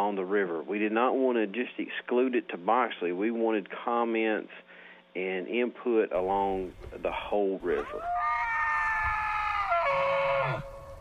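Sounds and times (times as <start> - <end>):
speech: 0.1 - 8.3
Rocky Mountain elk bugling at dawn: 7.7 - 10.9.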